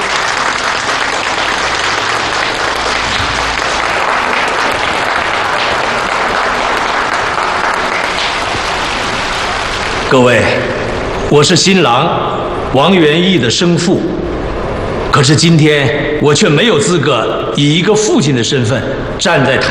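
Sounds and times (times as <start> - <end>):
applause: 0.0 - 10.2
speech: 10.1 - 10.7, 11.3 - 14.3, 15.1 - 19.7.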